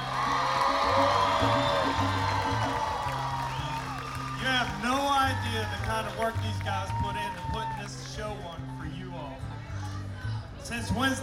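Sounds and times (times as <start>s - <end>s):
crowd applause: 0.0s - 8.6s
speech: 10.8s - 11.2s.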